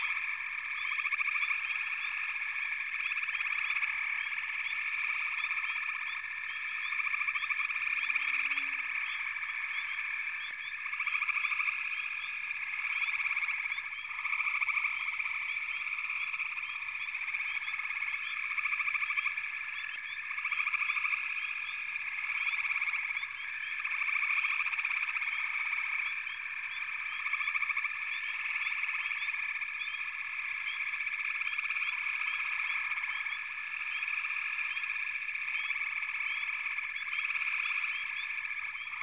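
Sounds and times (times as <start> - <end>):
frog chorus at a pond: 0.0 - 39.0.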